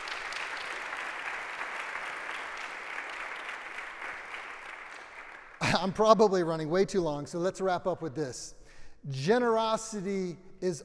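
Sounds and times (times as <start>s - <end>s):
audience applause: 0.0s - 5.8s
speech: 5.7s - 10.8s.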